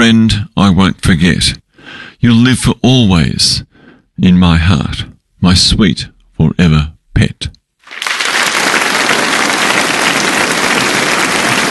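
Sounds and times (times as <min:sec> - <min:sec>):
speech: 0:00.0 - 0:08.1
crowd applause: 0:07.8 - 0:11.6.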